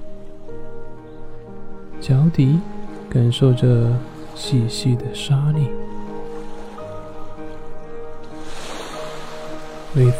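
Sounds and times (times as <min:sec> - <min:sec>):
sea waves washing onto a sandy beach: 0:00.0 - 0:10.1
soft sustained music: 0:00.0 - 0:10.1
speech: 0:02.0 - 0:06.0, 0:10.0 - 0:10.1.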